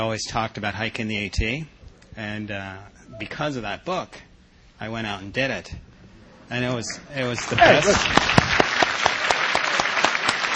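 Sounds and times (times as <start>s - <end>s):
speech: 0.0s - 5.9s, 6.5s - 8.4s
crowd applause: 6.9s - 10.5s
sharper regularly spaced claps: 7.4s - 10.5s.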